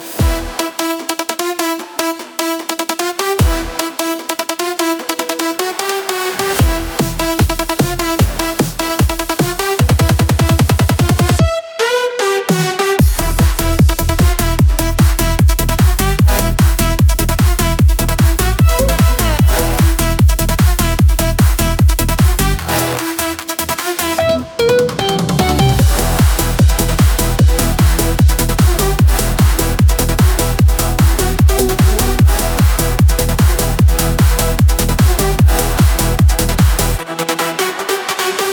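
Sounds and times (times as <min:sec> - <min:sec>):
music track beat: 0:00.0 - 0:38.4.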